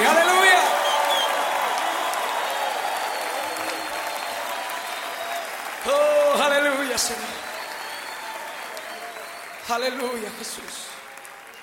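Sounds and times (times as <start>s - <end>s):
audience applauding and cheering: 0.0s - 11.6s
speech: 7.0s - 7.4s, 9.7s - 10.9s.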